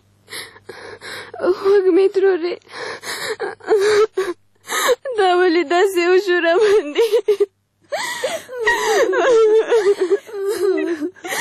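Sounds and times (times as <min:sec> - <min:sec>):
speech: 0:01.4 - 0:02.7, 0:05.2 - 0:09.9
distressed woman crying and wailing: 0:03.0 - 0:05.4, 0:06.4 - 0:11.3.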